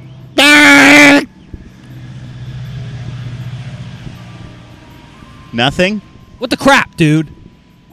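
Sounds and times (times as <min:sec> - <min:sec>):
train passing: 0:01.2 - 0:07.9
speech: 0:05.5 - 0:07.4.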